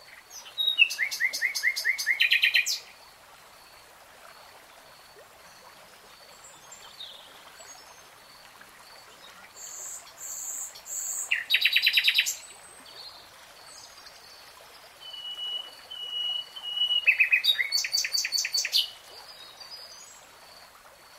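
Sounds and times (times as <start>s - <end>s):
nightingale singing: 0.4s - 2.8s, 9.6s - 12.4s, 15.0s - 19.0s.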